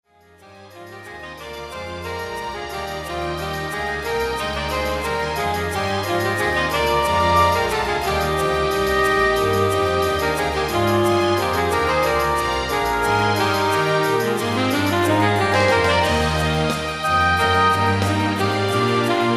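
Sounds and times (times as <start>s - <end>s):
saxophone concerto: 0.5s - 19.3s.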